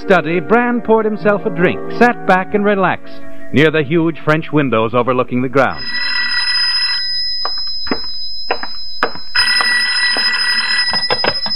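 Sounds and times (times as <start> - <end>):
speech: 0.0 - 6.0
telephone ringing with a trilling electronic bell: 5.8 - 11.5.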